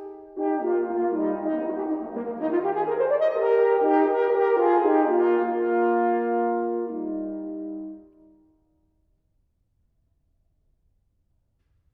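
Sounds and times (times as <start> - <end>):
two horns playing a slow duet: 0.0 - 8.3.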